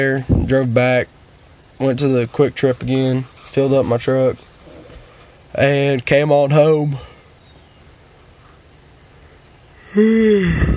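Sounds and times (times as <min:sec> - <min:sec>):
speech: 0:00.0 - 0:01.2, 0:01.8 - 0:04.5, 0:05.5 - 0:07.1, 0:09.9 - 0:10.7
person yawning: 0:09.8 - 0:10.7.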